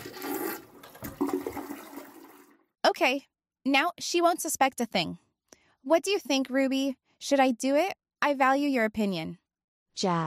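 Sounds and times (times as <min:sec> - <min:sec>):
toilets flushing in a ladies' room: 0:00.0 - 0:02.6
speech: 0:03.0 - 0:05.2, 0:05.8 - 0:09.4, 0:10.0 - 0:10.2.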